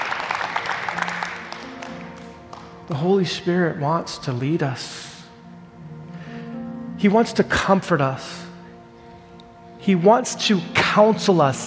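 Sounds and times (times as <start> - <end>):
audience clapping: 0.0 - 3.2
speech: 2.9 - 5.2, 7.0 - 8.5, 9.8 - 11.6.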